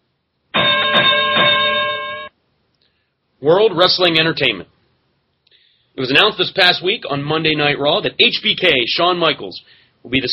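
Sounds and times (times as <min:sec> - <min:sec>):
bell ringing: 0:00.6 - 0:02.3
speech: 0:03.4 - 0:04.8, 0:06.0 - 0:10.3.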